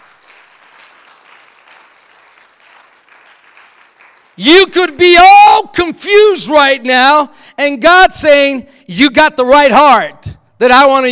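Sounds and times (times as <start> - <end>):
audience clapping: 0.0 - 4.7
speech: 4.4 - 11.1.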